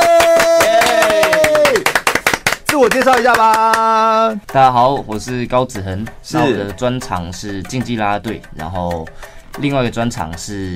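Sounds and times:
applause: 0.0 - 3.9
speech: 2.8 - 10.7.

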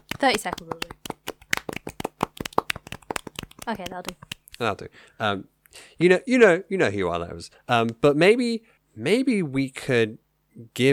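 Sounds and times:
brisk uneven hand clapping: 0.0 - 4.7
speech: 0.2 - 1.0, 3.7 - 10.9.

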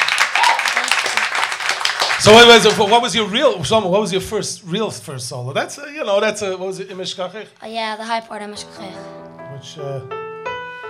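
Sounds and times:
audience applause: 0.0 - 3.6
speech: 2.2 - 10.2.

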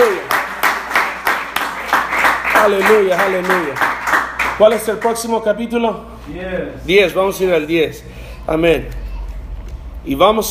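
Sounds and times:
audience applause: 0.0 - 5.2
speech: 2.6 - 4.0, 4.6 - 9.0, 10.0 - 10.4.

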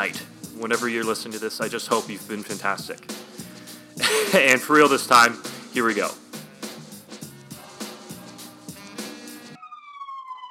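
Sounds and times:
speech: 0.0 - 3.2, 4.0 - 6.2
loud rhythmic music-like pulses: 0.0 - 9.6
laughter: 4.0 - 4.6
police car siren passing: 9.6 - 10.4.

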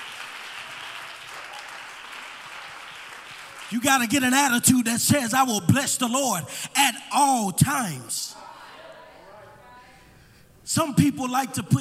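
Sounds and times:
audience clapping hands: 0.0 - 4.4
speech: 3.7 - 8.4, 10.7 - 11.7.

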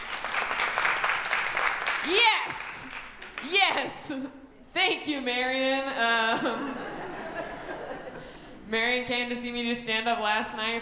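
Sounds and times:
clapping: 0.0 - 4.0
speech: 3.7 - 7.0, 8.7 - 10.8
laughter: 6.0 - 8.7.

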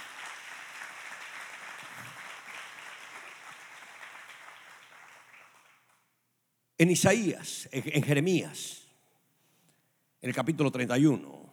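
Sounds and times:
audience applause: 0.0 - 6.0
speech: 6.8 - 8.8, 10.2 - 11.4.

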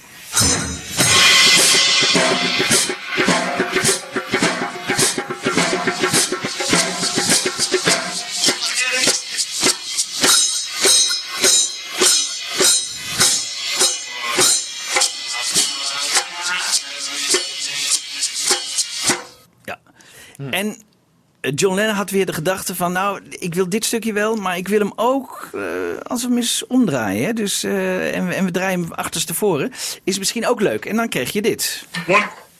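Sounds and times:
recorded drum part playing: 0.0 - 19.4
speech: 21.6 - 32.5.

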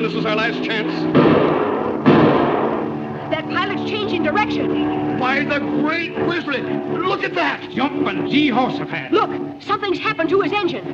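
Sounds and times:
speech: 0.1 - 1.5, 3.3 - 10.9
rifle gunshots: 1.2 - 3.1.

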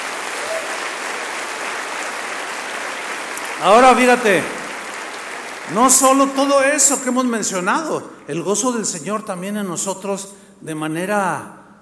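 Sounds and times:
audience applause: 0.0 - 7.6
speech: 3.6 - 4.6, 5.7 - 11.6.

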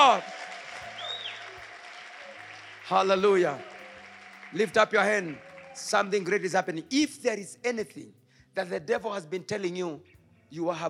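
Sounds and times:
speech: 0.0 - 0.4, 2.9 - 3.7, 4.5 - 10.8
audience hand clapping: 0.0 - 6.8.

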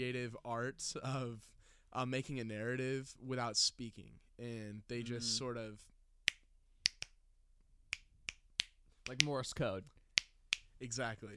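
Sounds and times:
speech: 0.0 - 5.9, 9.1 - 10.0, 10.8 - 11.3
finger snapping: 6.3 - 7.2, 7.9 - 9.3, 10.2 - 10.7.

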